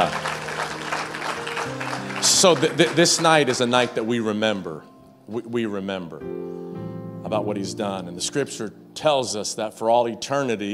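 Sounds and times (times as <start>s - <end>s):
audience clapping: 0.0s - 4.1s
speech: 2.2s - 6.6s, 7.3s - 10.7s.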